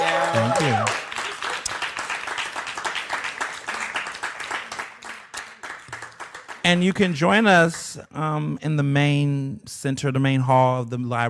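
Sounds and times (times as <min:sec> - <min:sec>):
audience applause: 0:00.0 - 0:06.8
speech: 0:00.3 - 0:01.1, 0:06.7 - 0:11.2.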